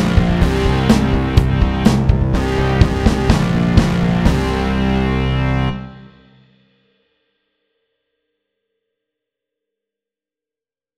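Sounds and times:
fast heavy metal music: 0.0s - 6.5s.

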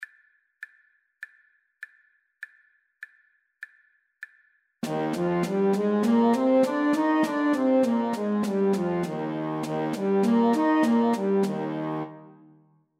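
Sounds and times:
natural horn in E-flat, loud: 4.8s - 12.5s.

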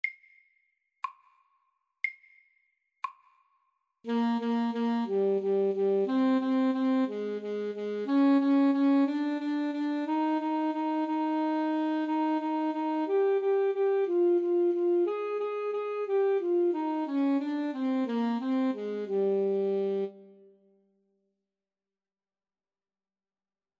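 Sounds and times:
slow etude: 4.1s - 20.7s.

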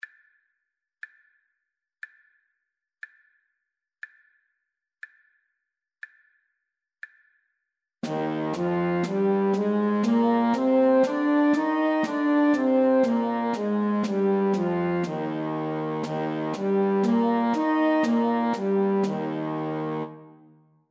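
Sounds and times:
slow E-flat major music: 8.0s - 20.7s.

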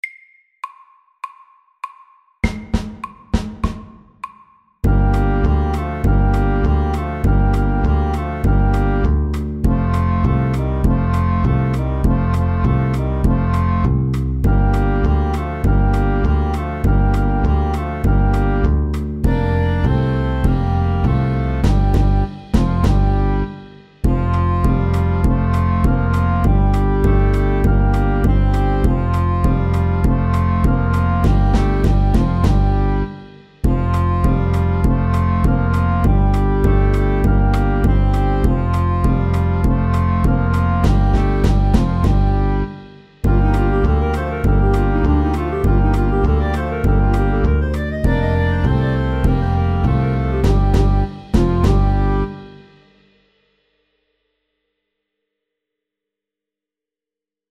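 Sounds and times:
slow Balkan stomp music: 0.1s - 52.7s.

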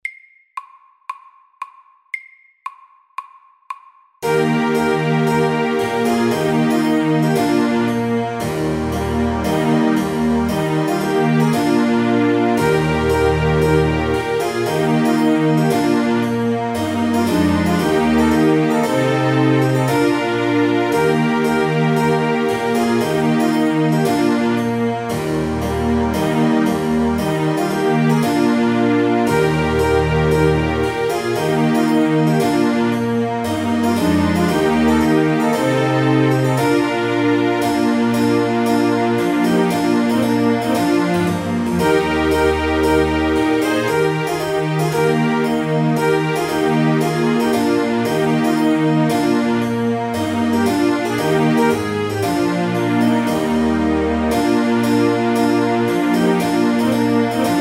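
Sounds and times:
trumpet tune: 4.2s - 57.5s.

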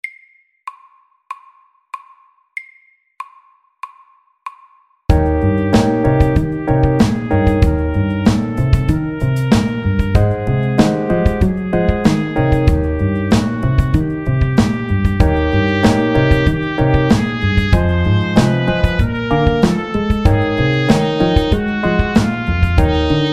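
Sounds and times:
chromatic blues: 5.1s - 23.3s.

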